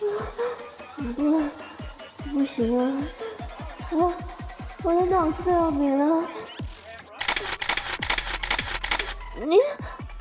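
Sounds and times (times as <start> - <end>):
speech: 2.4 - 3.2, 3.9 - 6.4, 9.4 - 9.9
camera shutter clicking as someone takes a photo: 7.2 - 9.2.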